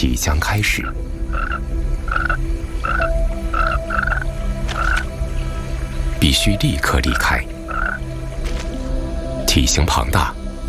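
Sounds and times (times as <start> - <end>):
speech: 0.0 - 4.3, 6.3 - 8.0, 9.5 - 10.4
large tree frog croaking: 0.4 - 5.4, 6.3 - 8.7.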